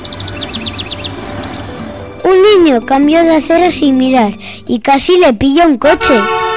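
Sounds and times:
small birds chirping: 0.0s - 4.7s
speech: 2.3s - 6.4s.

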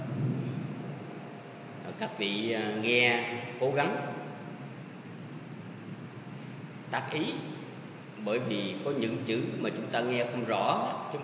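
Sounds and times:
thunder during a thunderstorm: 0.0s - 1.1s
speech: 2.0s - 4.3s, 6.9s - 7.6s, 8.2s - 11.2s.

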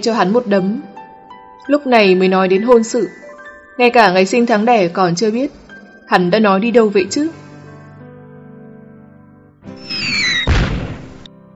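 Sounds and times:
speech: 0.0s - 0.9s, 1.6s - 3.2s, 3.8s - 7.4s
firework whistling: 9.8s - 11.3s.

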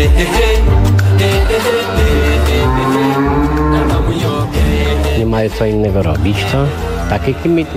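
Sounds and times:
speech: 0.2s - 0.5s, 5.4s - 7.7s
cows mooing: 1.7s - 5.5s, 6.1s - 7.7s.

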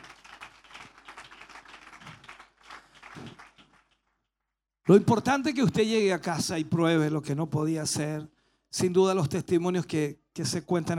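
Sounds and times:
audience applause: 0.0s - 4.1s
speech: 4.9s - 10.9s.

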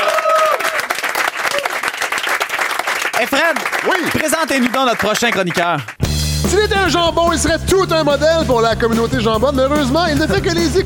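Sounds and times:
audience applause on a French-language evening talk show: 0.0s - 6.0s
speech: 3.2s - 10.8s.

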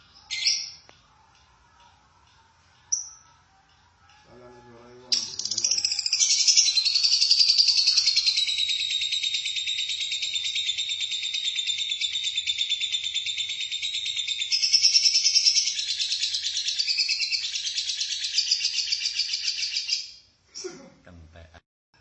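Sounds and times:
lovebird twittering: 5.1s - 20.1s.

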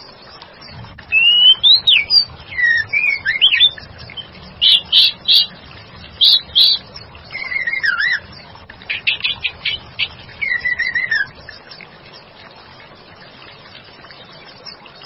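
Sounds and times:
white-rumped shama song: 1.1s - 5.5s, 6.2s - 8.2s, 10.4s - 11.4s.

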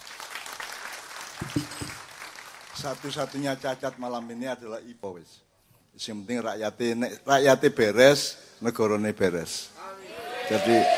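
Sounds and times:
speech event audience clapping: 0.0s - 4.4s
speech: 1.5s - 1.8s, 2.8s - 9.9s, 10.5s - 10.9s.

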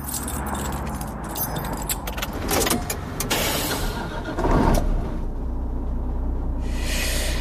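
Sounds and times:
keys jangling: 0.0s - 2.3s
truck engine running inside the cab: 0.0s - 7.3s.

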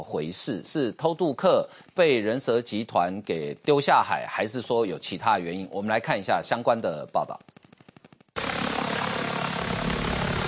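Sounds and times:
speech: 0.0s - 7.6s
drone rising beside a beach during a coast guard search patrol: 8.4s - 10.4s.

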